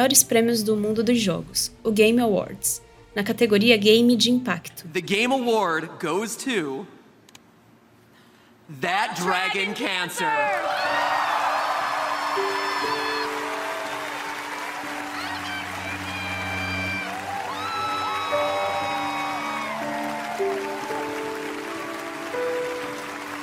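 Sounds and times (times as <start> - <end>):
bright orchestral music: 0.0 - 4.6, 10.8 - 23.4
speech: 0.0 - 7.0, 8.7 - 11.0
audience applauding warmly at awards ceremony: 10.2 - 23.4
whoops: 10.3 - 23.3.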